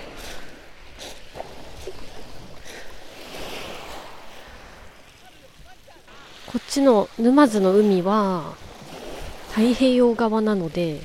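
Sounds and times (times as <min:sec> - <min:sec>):
calm ocean waves: 0:00.0 - 0:11.0
speech: 0:06.5 - 0:08.6, 0:09.6 - 0:11.0.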